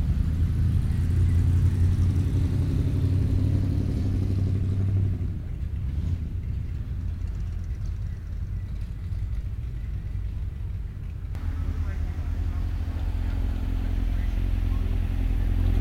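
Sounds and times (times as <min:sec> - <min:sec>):
motorcycles at a blackberry festival recorded in holophonic sound: 0:00.0 - 0:15.7.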